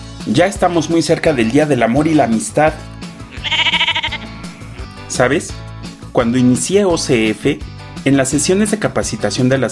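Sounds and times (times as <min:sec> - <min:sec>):
speech: 0:00.2 - 0:03.6, 0:05.2 - 0:09.7
sheep bleating: 0:03.2 - 0:05.1.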